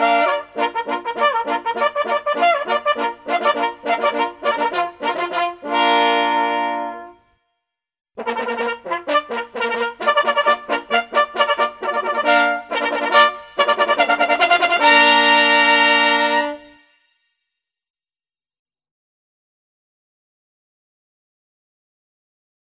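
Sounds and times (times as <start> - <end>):
multi-part hunting horns: 0.0 - 7.2, 8.2 - 17.0.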